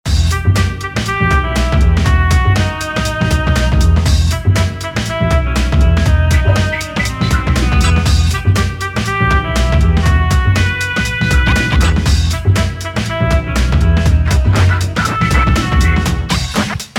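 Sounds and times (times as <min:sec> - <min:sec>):
dark theme music: 0:00.1 - 0:16.8.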